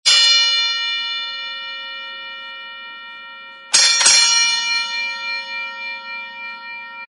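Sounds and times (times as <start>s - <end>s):
fight bell ringing: 0.1s - 7.1s.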